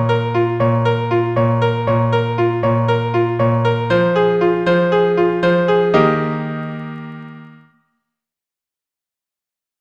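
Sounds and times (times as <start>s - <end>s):
piano arrangement: 0.0s - 7.7s.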